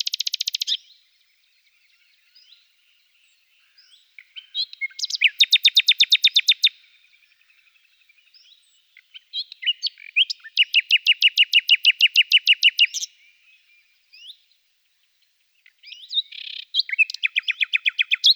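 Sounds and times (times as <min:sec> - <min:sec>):
common nightingale song: 0:00.0 - 0:18.3.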